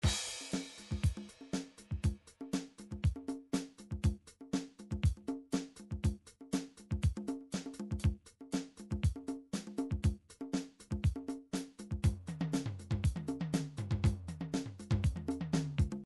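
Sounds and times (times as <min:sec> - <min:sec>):
midi drums: 0:00.0 - 0:16.0.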